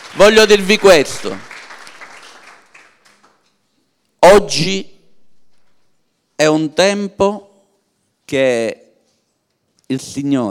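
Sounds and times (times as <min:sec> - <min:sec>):
audience applause: 0:00.0 - 0:03.4
speech: 0:00.1 - 0:01.5, 0:04.3 - 0:04.9, 0:06.4 - 0:07.5, 0:08.3 - 0:08.8, 0:09.9 - 0:10.5.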